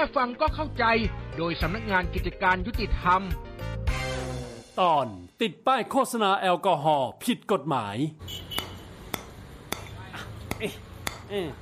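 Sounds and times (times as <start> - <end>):
speech: 0.0 - 3.5, 4.8 - 8.5, 10.6 - 11.6
hammer blows: 8.3 - 11.4.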